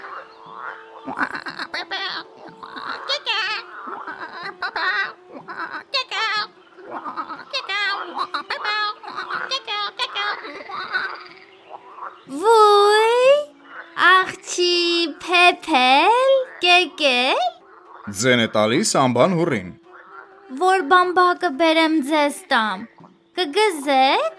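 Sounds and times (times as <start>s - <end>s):
frogs croaking along a riverbank: 0.0s - 24.3s
speech: 1.0s - 2.3s, 18.1s - 19.8s, 20.6s - 24.3s.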